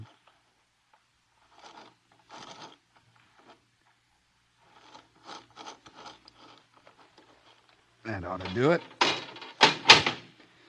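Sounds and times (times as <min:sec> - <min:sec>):
speech: 0:08.2 - 0:09.0
heavy door opening: 0:08.3 - 0:10.4.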